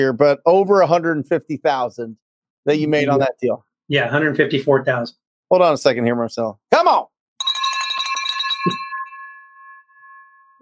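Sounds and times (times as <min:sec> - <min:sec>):
speech: 0:00.0 - 0:07.1
bright bell struck to celebrate a deal: 0:07.4 - 0:10.6.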